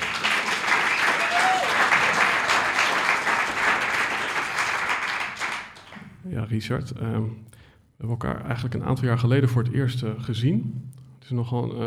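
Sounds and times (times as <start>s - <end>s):
thunderous applause from a large audience: 0.0s - 6.1s
speech: 6.3s - 11.8s.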